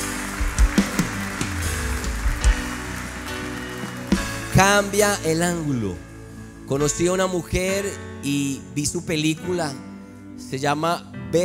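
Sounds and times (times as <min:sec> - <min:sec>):
church audience applauding: 0:00.0 - 0:05.0
speech: 0:04.6 - 0:06.1, 0:06.7 - 0:11.4.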